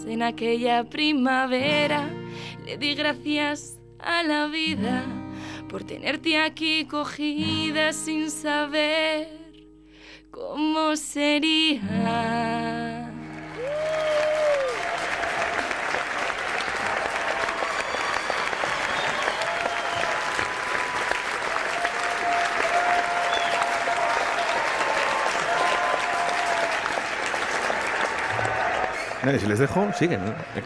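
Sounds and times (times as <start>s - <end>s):
speech: 0.0s - 9.4s, 10.3s - 12.9s, 29.2s - 30.6s
fans applauding: 13.2s - 30.6s.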